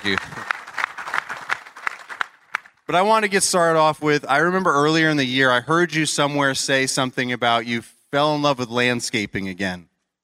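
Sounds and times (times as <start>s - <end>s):
speech: 0.0s - 0.4s, 2.9s - 9.9s
audience applause: 0.0s - 2.8s.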